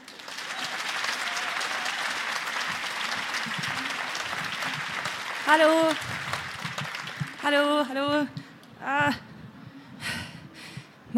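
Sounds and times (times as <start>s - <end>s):
audience applause: 0.0s - 8.0s
speech: 5.5s - 6.1s, 7.4s - 9.2s.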